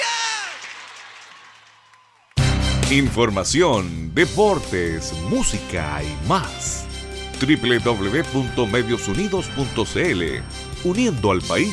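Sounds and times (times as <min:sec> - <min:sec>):
crowd applause and cheering: 0:00.0 - 0:02.9
speech: 0:02.9 - 0:11.7.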